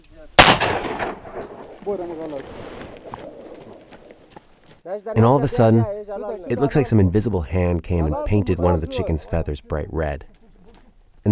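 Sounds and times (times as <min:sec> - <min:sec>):
gunshot: 0:00.4 - 0:01.7
speech: 0:01.8 - 0:02.8, 0:04.9 - 0:10.4.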